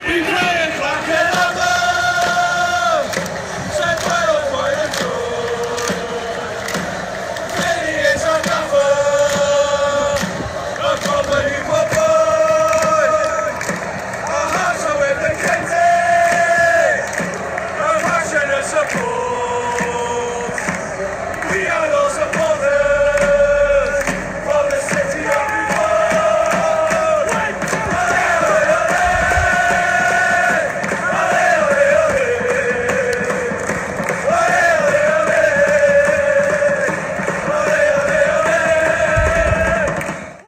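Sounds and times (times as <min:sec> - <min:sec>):
football fans chanting: 0:00.0 - 0:40.4.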